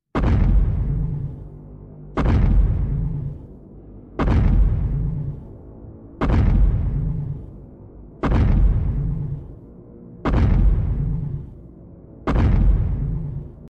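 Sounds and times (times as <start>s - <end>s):
giant walking: 0.2s - 1.5s, 2.2s - 3.6s, 4.2s - 5.6s, 6.2s - 7.6s, 8.2s - 9.6s, 10.2s - 11.6s, 12.2s - 13.7s.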